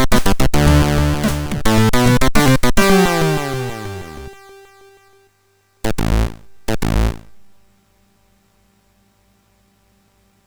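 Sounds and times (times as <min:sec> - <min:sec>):
funk chiptune music on MOS6581R4 sound chip: 0:00.0 - 0:05.0, 0:05.8 - 0:07.6.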